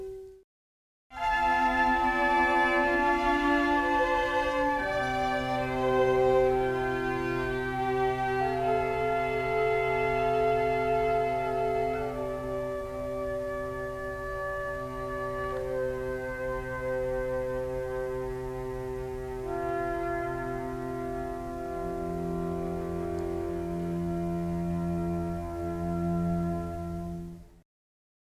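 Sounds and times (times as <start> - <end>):
strings: 1.2 - 27.6
trumpet: 1.2 - 27.6.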